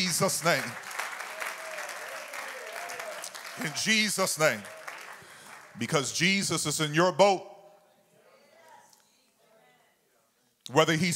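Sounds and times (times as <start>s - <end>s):
audience clapping hands: 0.0s - 6.5s
speech: 0.2s - 0.9s, 3.6s - 4.8s, 5.8s - 7.5s, 10.7s - 11.1s.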